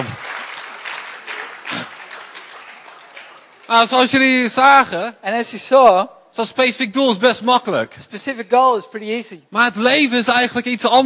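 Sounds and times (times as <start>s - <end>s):
group applause from a small crowd at a bilingual goal-setting workshop: 0.0s - 4.4s
speech: 3.7s - 11.0s.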